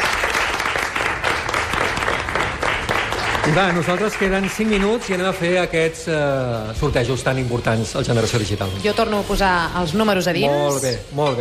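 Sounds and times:
audience applause: 0:00.0 - 0:05.5
speech: 0:03.5 - 0:11.3.

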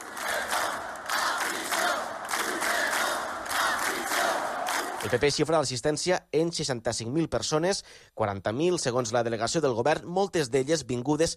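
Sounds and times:
protest crowd shouting chants: 0:00.0 - 0:05.2
speech: 0:05.0 - 0:11.3.

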